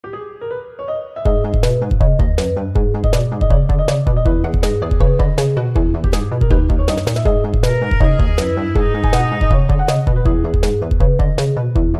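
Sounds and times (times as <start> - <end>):
music: 0.0 - 11.9.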